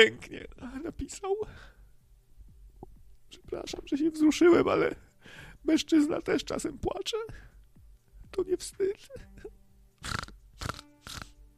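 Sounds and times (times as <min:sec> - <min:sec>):
speech: 0:00.0 - 0:01.8, 0:03.5 - 0:07.5, 0:08.3 - 0:10.8
person grunting in imitation of a pig: 0:10.0 - 0:11.4.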